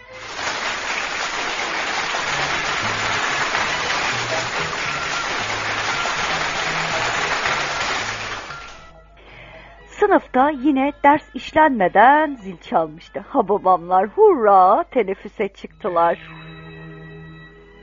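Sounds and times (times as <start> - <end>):
children applauding in a classroom: 0.0 - 8.9
speech: 10.1 - 16.5.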